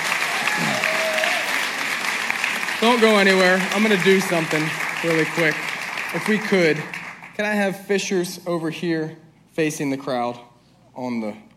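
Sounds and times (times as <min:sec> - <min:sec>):
audience applause: 0:00.0 - 0:07.4
speech: 0:02.8 - 0:11.5.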